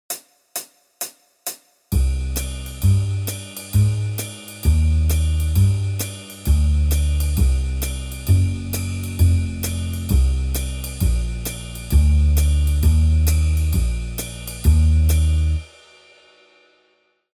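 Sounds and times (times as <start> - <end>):
jazz backing music: 2.0 - 15.6.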